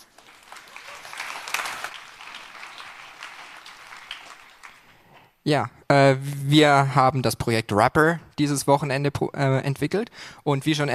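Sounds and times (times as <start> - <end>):
audience clapping: 0.0 - 5.2
speech: 5.4 - 10.9.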